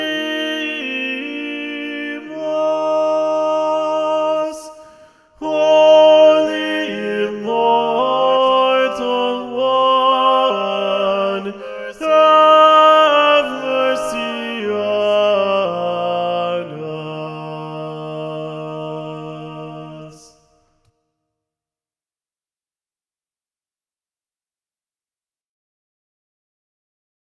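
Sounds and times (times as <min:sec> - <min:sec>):
SATB choir singing with tenor predominant: 0:00.0 - 0:20.5.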